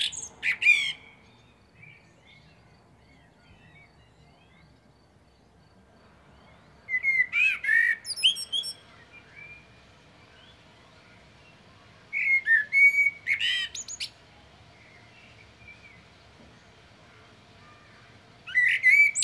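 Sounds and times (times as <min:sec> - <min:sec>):
common blackbird singing, Turdus merula: 0:00.0 - 0:05.6, 0:06.3 - 0:19.2.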